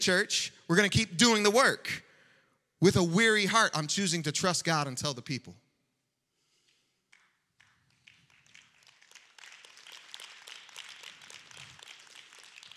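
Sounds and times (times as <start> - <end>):
speech: 0.0 - 2.0, 2.8 - 5.6
slow clap: 6.5 - 12.7.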